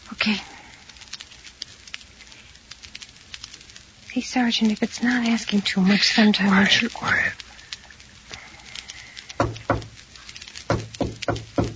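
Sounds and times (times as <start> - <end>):
speech: 0.2 - 0.6, 4.2 - 7.4
knocking on a door: 9.4 - 9.9, 10.7 - 11.7.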